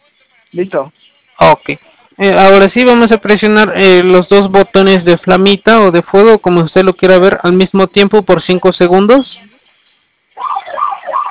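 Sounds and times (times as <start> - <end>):
speech: 0.5 - 9.4
security alarm siren wailing: 10.4 - 11.3.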